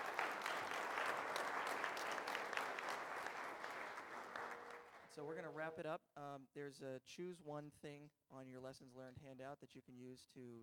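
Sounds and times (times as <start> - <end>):
audience applause: 0.0 - 5.1
speech: 5.2 - 10.6.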